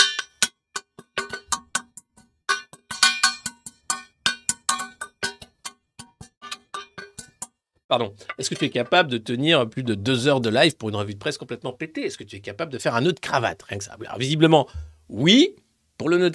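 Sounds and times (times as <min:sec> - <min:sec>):
saucepan beaten in a samba-like groove: 0:00.0 - 0:07.6
speech: 0:07.9 - 0:16.3.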